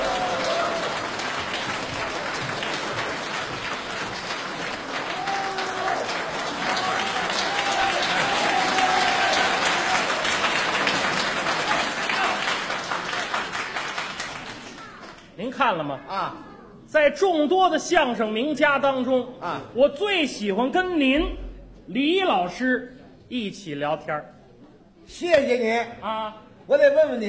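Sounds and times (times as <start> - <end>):
audience applause welcoming two crosstalk comedians at a Beijing comedy show: 0.0 - 15.3
speech: 15.7 - 24.4, 25.1 - 27.2.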